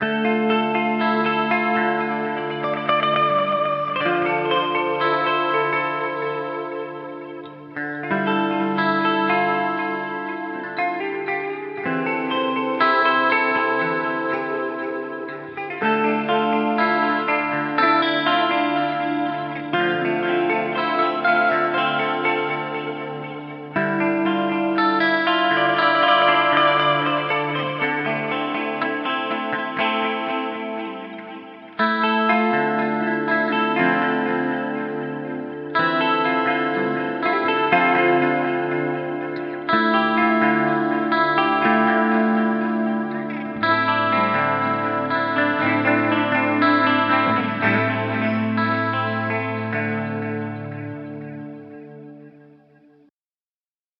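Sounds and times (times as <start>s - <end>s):
Harley Benton DNAfx GiT clean guitar with flanger: 0.0s - 53.1s.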